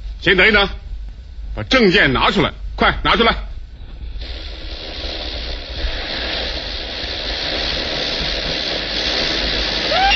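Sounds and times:
speech: 0:00.2 - 0:00.8, 0:01.6 - 0:03.5, 0:04.2 - 0:04.5
steam locomotive releasing steam: 0:03.8 - 0:10.1.

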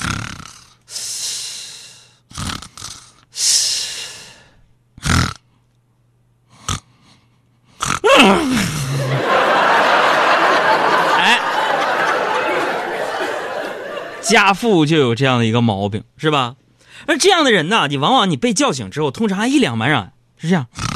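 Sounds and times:
voice imitating irregular snoring: 0:00.0 - 0:00.8, 0:02.3 - 0:03.7, 0:05.0 - 0:05.5, 0:06.5 - 0:09.2, 0:20.7 - 0:20.9
laughter: 0:08.1 - 0:14.5
speech: 0:14.3 - 0:20.8.

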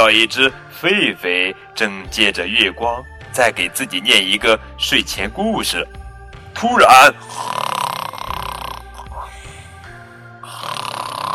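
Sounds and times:
speech: 0:00.0 - 0:06.0, 0:06.6 - 0:07.8
person imitating snoring: 0:07.2 - 0:09.6, 0:10.4 - 0:11.3.

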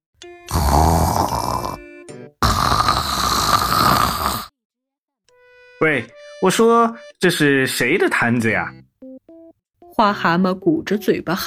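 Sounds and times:
snoring: 0:00.5 - 0:04.5
speech: 0:05.8 - 0:08.9, 0:10.0 - 0:11.4.

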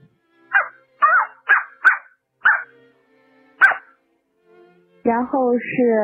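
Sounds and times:
voice imitating a small dog barking: 0:00.5 - 0:02.7, 0:03.6 - 0:03.9
speech: 0:05.0 - 0:06.0.

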